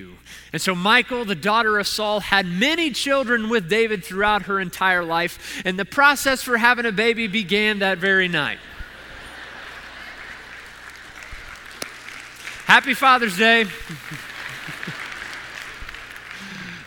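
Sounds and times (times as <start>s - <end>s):
speech: 0.0s - 8.7s, 12.7s - 14.3s
laughter: 8.6s - 11.6s, 13.4s - 16.8s
men in audience clapping: 8.6s - 16.8s.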